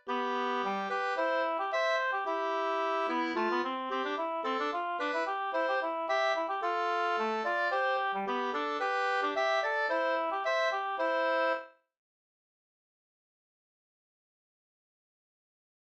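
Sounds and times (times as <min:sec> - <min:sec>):
folk dance quadrille music in C major: 0:00.1 - 0:11.6.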